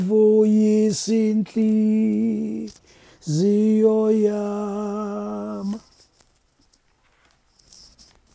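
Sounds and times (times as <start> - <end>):
tenor singing: 0.0 - 5.9.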